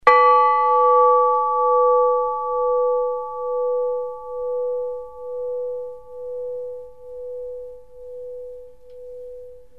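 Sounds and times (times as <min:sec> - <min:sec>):
Russian bells ringing: 0:00.0 - 0:07.0.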